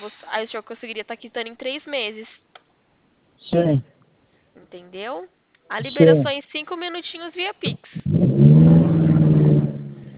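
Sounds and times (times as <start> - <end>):
speech: 0.0 - 2.6, 3.5 - 4.0, 4.6 - 8.0
car engine while being driven: 8.0 - 10.1.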